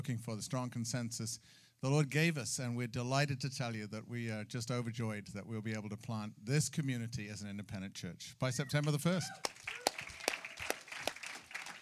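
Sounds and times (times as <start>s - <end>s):
speech: 0.0s - 9.8s
scattered audience applause: 9.3s - 11.7s.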